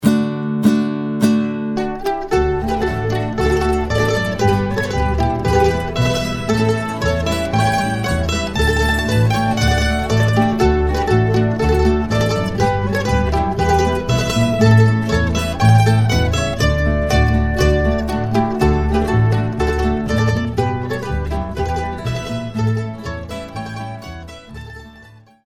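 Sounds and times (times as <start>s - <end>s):
mandolins playing a polska: 0.0s - 25.4s.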